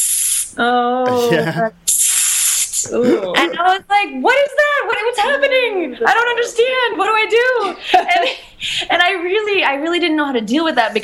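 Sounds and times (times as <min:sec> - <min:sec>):
voice imitating a hissing street catcall from the Dominican Republic: 0:00.0 - 0:03.4
speech: 0:00.4 - 0:01.8, 0:02.8 - 0:11.0.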